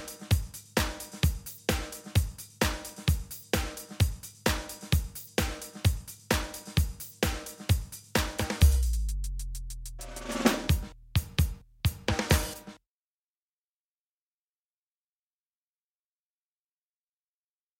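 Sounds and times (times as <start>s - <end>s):
drum kit playing: 0.0s - 12.8s.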